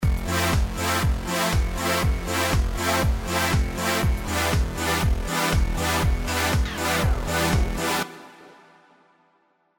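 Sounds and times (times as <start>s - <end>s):
sidechained music: 0.0s - 8.3s.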